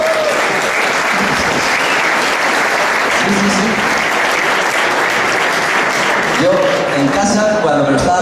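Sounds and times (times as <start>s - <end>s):
audience applause: 0.0s - 8.2s
speech: 3.3s - 3.9s.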